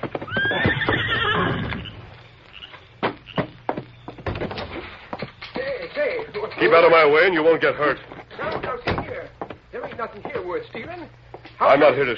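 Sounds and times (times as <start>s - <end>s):
horse hooves clopping and stamping: 0.0s - 12.1s
horse whinnying: 0.2s - 2.8s
speech: 6.6s - 8.1s, 10.0s - 12.1s.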